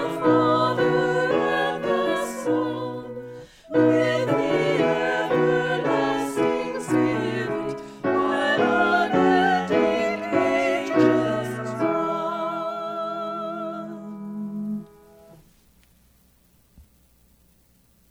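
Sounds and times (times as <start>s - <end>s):
SATB choir singing a hymn: 0.0s - 14.2s
piano: 0.0s - 15.5s.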